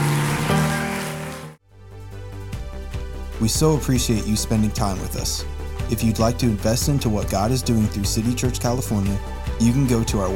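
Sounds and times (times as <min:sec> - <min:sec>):
audience shouting and clapping: 0:00.0 - 0:01.6
sustained musical chords: 0:00.0 - 0:01.6
speech: 0:03.4 - 0:10.3.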